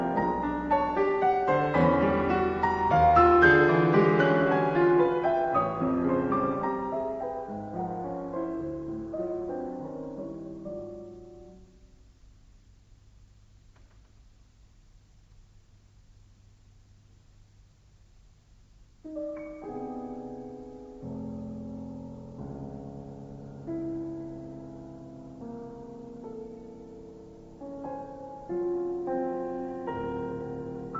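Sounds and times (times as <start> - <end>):
piano duo: 0.0 - 12.0, 19.0 - 30.9.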